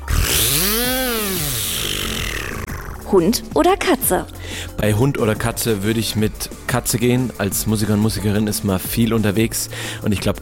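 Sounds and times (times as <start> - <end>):
voice imitating a buzzing spinning firework: 0.0 - 3.5
speech: 3.1 - 10.4.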